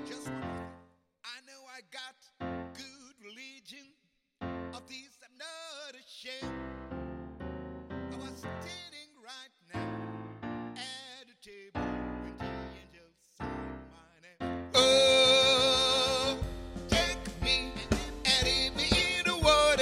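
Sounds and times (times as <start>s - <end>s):
men's voices: 14.8s - 19.7s.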